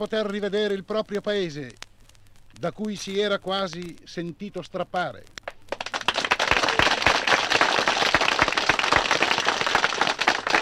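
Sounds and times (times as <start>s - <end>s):
speech: 0.0s - 1.8s, 2.6s - 5.4s
applause from an outdoor crowd under a pergola: 5.7s - 10.5s.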